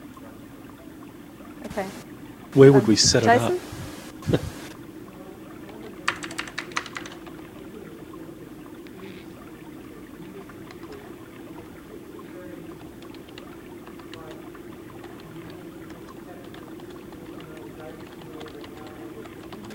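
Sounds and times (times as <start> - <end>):
speech: 1.7 - 4.6
typing on a computer keyboard: 6.0 - 7.5, 10.6 - 11.1, 12.7 - 19.7.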